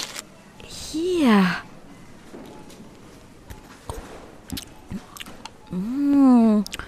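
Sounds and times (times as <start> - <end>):
speech: 0.9 - 1.7
person chewing food: 3.9 - 5.8.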